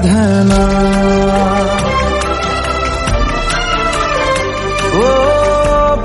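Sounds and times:
Bollywood song ringtone: 0:00.1 - 0:05.9.

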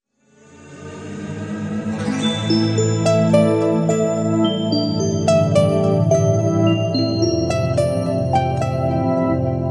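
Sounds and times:
musical ringtone: 0:02.0 - 0:09.6.

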